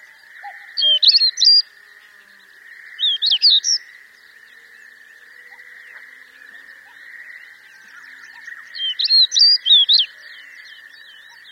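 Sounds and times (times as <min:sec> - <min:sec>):
Amur stonechat singing: 0:00.0 - 0:01.7, 0:03.0 - 0:03.9, 0:07.7 - 0:11.5.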